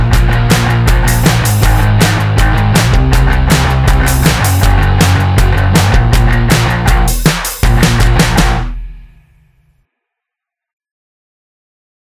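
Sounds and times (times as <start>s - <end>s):
indie pop rock music without lead: 0.0s - 9.1s.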